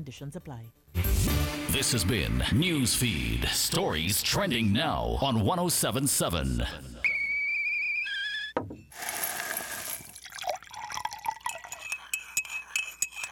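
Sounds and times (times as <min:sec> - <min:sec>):
speech: 0:00.0 - 0:07.1
bright whistling tone: 0:07.0 - 0:08.6
cup and spoon clinking: 0:08.9 - 0:13.2
Nescafé coffee being poured: 0:09.0 - 0:13.2.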